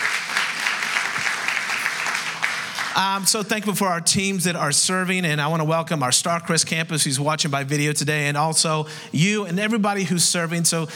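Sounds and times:
church congregation applauding at the new Huebner Oaks campus service: 0:00.0 - 0:03.4
speech: 0:03.0 - 0:10.9.

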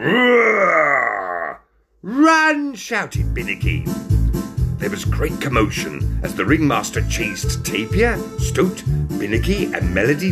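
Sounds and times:
person imitating a large growl: 0:00.0 - 0:01.7
speech: 0:02.8 - 0:10.3.

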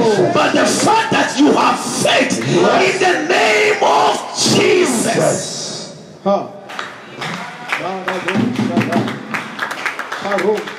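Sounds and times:
person speaking loudly: 0:00.0 - 0:05.9
speech: 0:06.2 - 0:06.6
audience clapping: 0:06.6 - 0:10.7.

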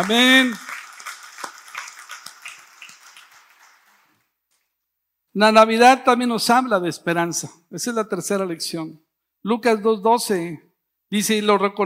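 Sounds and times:
speech: 0:00.0 - 0:00.7, 0:05.4 - 0:11.8
audience applause: 0:00.0 - 0:04.2.

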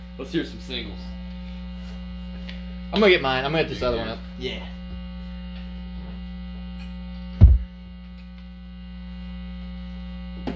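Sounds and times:
solid state guitar amplifier buzz: 0:00.0 - 0:10.5
speech: 0:00.2 - 0:01.2, 0:02.9 - 0:04.8
dull low thump: 0:07.4 - 0:07.7.

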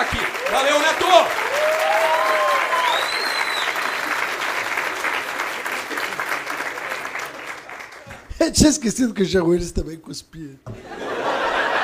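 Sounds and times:
audience applause: 0:00.0 - 0:08.3
speech: 0:00.5 - 0:01.3, 0:08.5 - 0:10.8
faint whistles: 0:02.8 - 0:04.0
laughter: 0:10.7 - 0:11.8.

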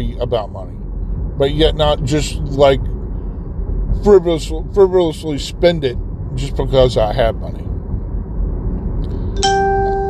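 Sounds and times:
speech: 0:00.0 - 0:00.8, 0:01.4 - 0:02.9, 0:04.0 - 0:07.6, 0:09.4 - 0:09.6
low rumble: 0:00.0 - 0:10.0
phone notification ding: 0:09.4 - 0:10.0.

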